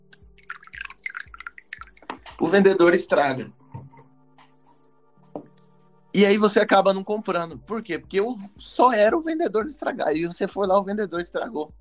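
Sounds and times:
coffee being poured into a cup: 0.4s - 2.2s
speech: 2.4s - 3.6s, 6.2s - 11.7s.

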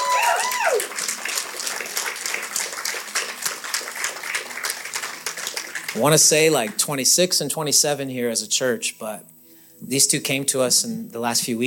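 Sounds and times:
church audience clapping: 0.0s - 7.1s
speech: 6.0s - 11.6s.

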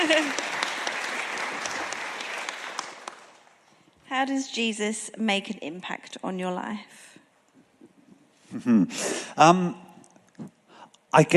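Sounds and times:
clapping: 0.0s - 3.6s
speech: 0.1s - 0.5s, 4.2s - 7.2s, 8.5s - 9.8s, 10.4s - 11.3s.

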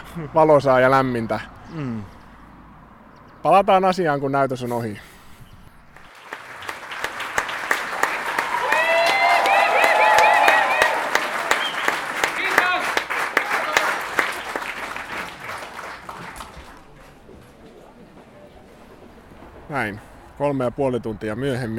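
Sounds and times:
speech: 0.2s - 2.2s, 3.4s - 5.1s, 19.8s - 21.7s
audience applauding for an encore: 6.0s - 17.3s.

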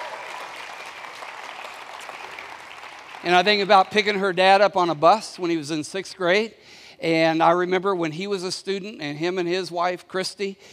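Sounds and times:
audience hand clapping: 0.0s - 5.2s
speech: 3.2s - 10.7s.

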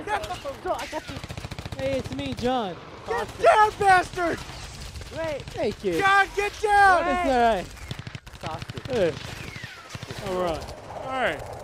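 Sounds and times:
excited voices: 0.0s - 1.2s, 3.1s - 4.4s, 5.9s - 7.6s
gunfire in a battlefield video game: 0.0s - 11.6s
speech: 0.1s - 4.5s, 5.1s - 7.8s, 8.4s - 9.4s, 10.2s - 11.5s.

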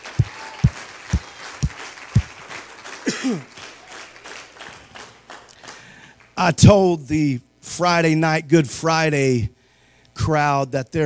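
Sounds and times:
crowd shouting praise: 0.0s - 5.3s
speech: 3.2s - 3.6s, 6.4s - 9.6s, 10.2s - 11.0s.

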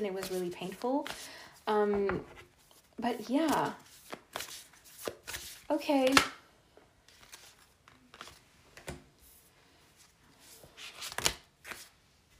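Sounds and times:
speech: 0.0s - 4.5s, 5.7s - 6.4s
tarot cards being shuffled: 0.1s - 1.3s, 1.9s - 6.4s, 7.1s - 9.0s, 10.4s - 12.0s.

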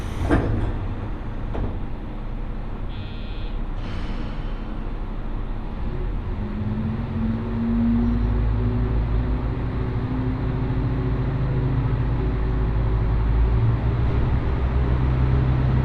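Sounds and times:
clunks: 0.0s - 2.0s
Mizushima Rinkai Railway train rumbling: 0.0s - 15.8s.

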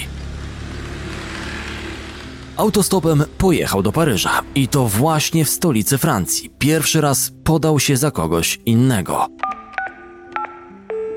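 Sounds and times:
speech: 2.6s - 9.6s
telephone number being dialed DTMF tones: 9.4s - 11.1s.

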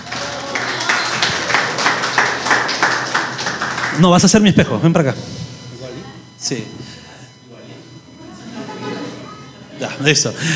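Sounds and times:
audience applause: 0.0s - 4.8s
laughter: 0.0s - 10.5s
speech: 4.0s - 5.4s, 6.4s - 7.0s, 10.0s - 10.5s.

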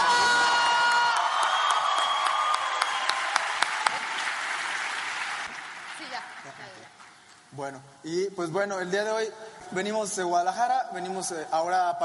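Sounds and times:
audience applause: 0.0s - 7.0s
speech: 7.6s - 12.0s.

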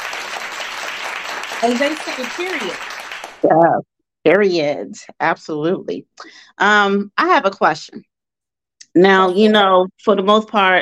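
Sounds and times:
applause sound effect: 0.0s - 3.4s
speech: 1.6s - 8.1s, 9.0s - 10.8s.

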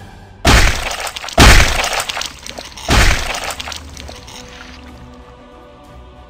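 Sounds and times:
heavy hammer blows smashing a body: 0.5s - 4.3s.

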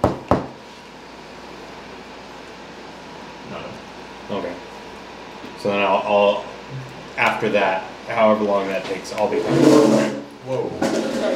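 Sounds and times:
knocking on a door: 0.0s - 0.5s
speech: 5.6s - 11.3s.

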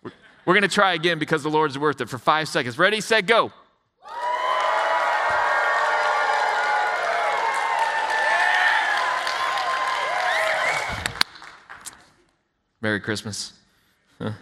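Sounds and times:
speech: 0.5s - 3.6s, 12.8s - 13.6s, 14.2s - 14.4s
audience shouting and cheering with joy: 4.0s - 10.9s.

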